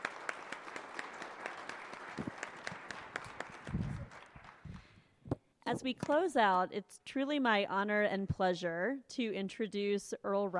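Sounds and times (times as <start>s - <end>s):
audience round of applause: 0.0s - 4.9s
speech: 5.7s - 10.5s.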